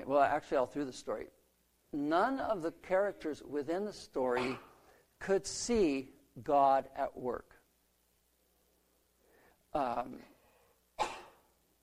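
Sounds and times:
speech: 0:00.1 - 0:07.6, 0:09.7 - 0:10.3
sneeze: 0:04.4 - 0:04.8, 0:11.0 - 0:11.5.

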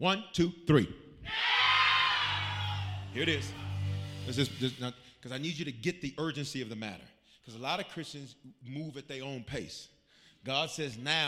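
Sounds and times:
speech: 0:00.0 - 0:01.6, 0:03.1 - 0:03.6, 0:04.2 - 0:11.2
audience shouting together: 0:01.2 - 0:03.2.

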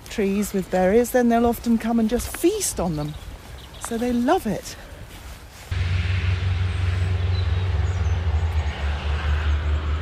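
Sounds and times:
speech: 0:00.2 - 0:04.8
freight train passing: 0:05.7 - 0:10.0.

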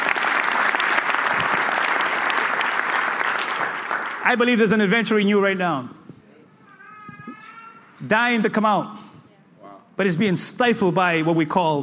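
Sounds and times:
audience applause: 0:00.0 - 0:04.5
speech: 0:04.3 - 0:06.0, 0:08.0 - 0:09.0, 0:10.0 - 0:11.8.

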